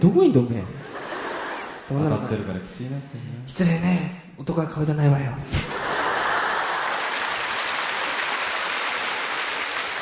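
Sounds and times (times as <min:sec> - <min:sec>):
speech: 0:00.0 - 0:00.8, 0:01.9 - 0:05.8
laughter: 0:00.8 - 0:02.6, 0:05.6 - 0:08.6
audience applause: 0:05.9 - 0:10.0.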